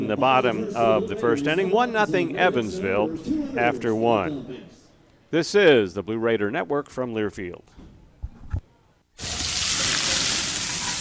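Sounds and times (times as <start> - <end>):
speech: 0.0 - 4.7, 5.3 - 7.8
burger sizzling on a grill: 9.2 - 11.0.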